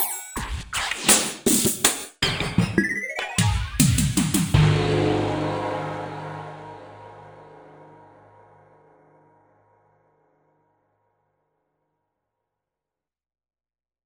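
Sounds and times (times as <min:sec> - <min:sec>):
mega drums: 0:00.0 - 0:05.3.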